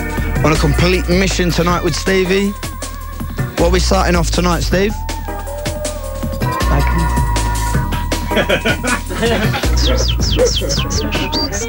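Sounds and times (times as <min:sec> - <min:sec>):
music track with heavy pulsing bass line: 0:00.0 - 0:11.6
speech: 0:00.4 - 0:02.7, 0:03.6 - 0:05.1, 0:08.4 - 0:11.6
laughter: 0:00.4 - 0:11.6
high bird whistles on a record: 0:04.9 - 0:11.6.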